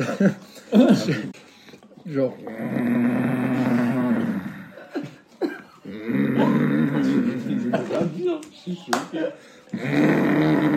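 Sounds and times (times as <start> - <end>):
speech: 0.0 - 1.4, 2.0 - 3.7, 8.3 - 10.7
person imitating loud heavy snoring with their voice: 2.5 - 4.8, 5.9 - 7.7, 9.7 - 10.7.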